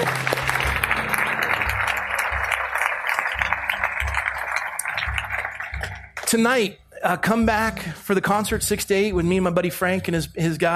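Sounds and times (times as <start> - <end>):
audience applauding: 0.0 - 6.4
low rhythmic thumps of music: 0.0 - 10.7
speech: 6.3 - 10.7.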